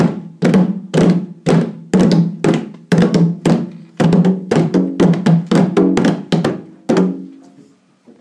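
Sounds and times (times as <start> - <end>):
drumming: 0.0 - 7.4.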